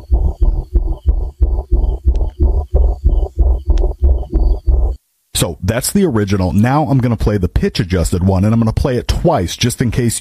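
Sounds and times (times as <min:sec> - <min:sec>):
pulsating low hum of a data center: 0:00.0 - 0:05.0
faint high whine: 0:00.0 - 0:06.8
speech: 0:05.4 - 0:10.2.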